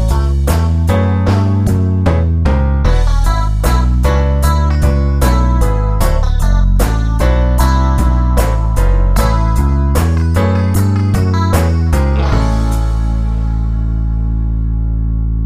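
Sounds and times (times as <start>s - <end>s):
twelve-bar blues boogie woogie bass line in A: 0.0s - 15.4s.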